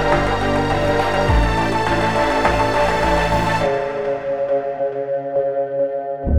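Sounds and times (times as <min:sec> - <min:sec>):
electronic music: 0:00.0 - 0:06.3.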